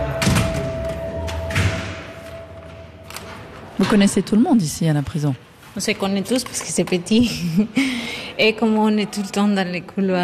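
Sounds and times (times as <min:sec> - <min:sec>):
door being closed: 0:00.2 - 0:02.4
speech: 0:03.8 - 0:10.2.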